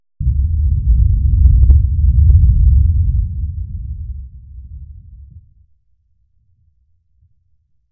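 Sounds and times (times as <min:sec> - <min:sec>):
explosion: 0:00.2 - 0:05.6.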